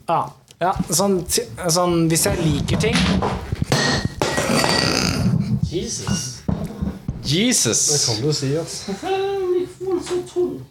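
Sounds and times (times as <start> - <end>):
speech: 0.1 - 3.9, 5.7 - 6.4, 7.2 - 9.3
glass crashing on the floor: 3.0 - 7.1.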